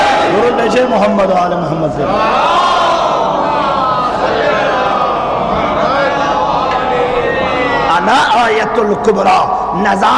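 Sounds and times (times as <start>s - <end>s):
crowd at a religious sermon roaring a slogan in unison: 0.0s - 0.6s, 2.0s - 8.1s
speech: 1.0s - 2.6s, 8.0s - 10.1s.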